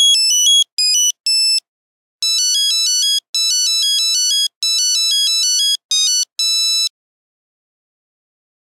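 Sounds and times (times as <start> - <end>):
Nokia 8310 mobile phone buzzer ringtone melody: 0.0 - 1.6, 2.2 - 6.9.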